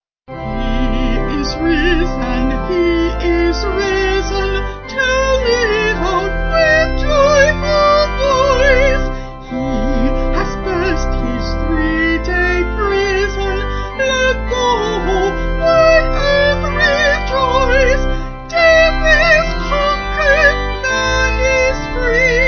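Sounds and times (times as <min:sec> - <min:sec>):
vocal organ: 0:00.3 - 0:22.4.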